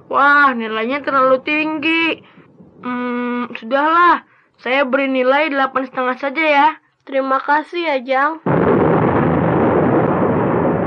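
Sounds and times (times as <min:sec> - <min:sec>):
speech: 0:00.1 - 0:08.6
rolling thunder: 0:08.5 - 0:10.8.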